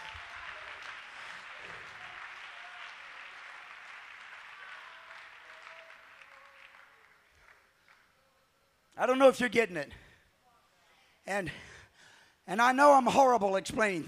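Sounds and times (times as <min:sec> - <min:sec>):
audience clapping hands: 0:00.0 - 0:08.3
speech: 0:09.0 - 0:10.0, 0:11.3 - 0:11.7, 0:12.5 - 0:14.0.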